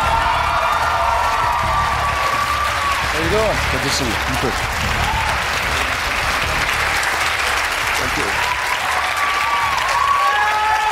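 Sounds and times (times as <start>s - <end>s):
audience shouts and whoops: 0.0s - 3.1s, 4.9s - 5.5s, 8.3s - 10.8s
town hall audience clapping for Senator Bernie Sanders at a college event: 0.0s - 10.8s
speech: 3.3s - 5.2s.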